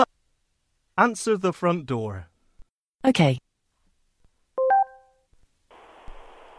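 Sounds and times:
speech: 1.0s - 2.3s, 3.0s - 3.4s
electronic beeping tones: 4.6s - 5.1s.

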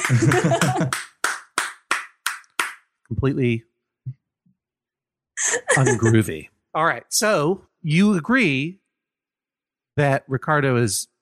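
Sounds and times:
laughter: 0.0s - 1.0s, 5.4s - 6.4s
rhythmic hand clapping, Norteño style: 0.0s - 2.9s
speech: 0.1s - 1.1s, 3.1s - 4.2s, 5.4s - 8.8s, 10.0s - 11.1s.

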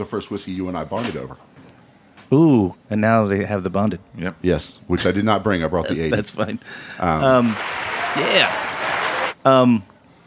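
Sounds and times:
speech: 0.0s - 1.6s, 2.3s - 8.7s, 9.4s - 9.9s
crowd applause: 7.0s - 9.4s.

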